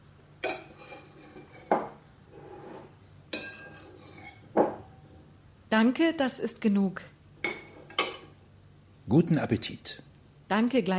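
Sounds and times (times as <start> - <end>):
dishes clinking at a meal: 0.4 - 5.2, 7.4 - 8.4
ceramic plate knocks as a plate is handed over: 4.5 - 4.9
speech: 5.7 - 7.1, 9.1 - 10.9.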